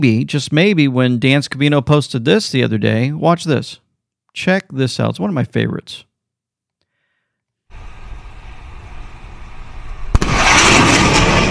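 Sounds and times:
speech: 0.0 - 3.8, 4.4 - 6.1
fighter jet flying past breaking the sound barrier: 7.8 - 11.4.

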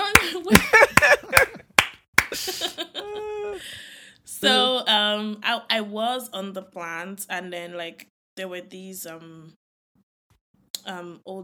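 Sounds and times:
repeated claps: 0.0 - 2.4
laughter: 0.2 - 1.7, 2.3 - 3.6
speech: 4.4 - 9.6, 10.8 - 11.4.

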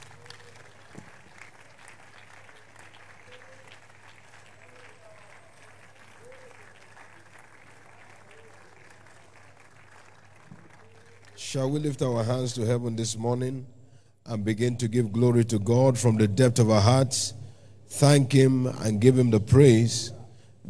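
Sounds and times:
audience clapping: 0.0 - 12.2
speech: 11.5 - 20.6.

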